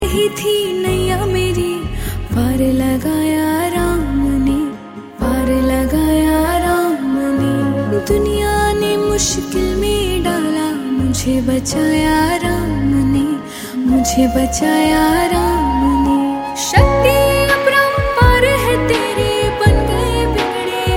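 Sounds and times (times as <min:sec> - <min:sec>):
devotional bhajan song: 0:00.0 - 0:20.9.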